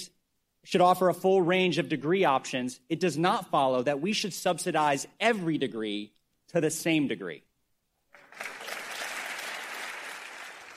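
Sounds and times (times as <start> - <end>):
speech: 0.7 - 7.5
applause from legislators in a chamber: 8.1 - 10.7.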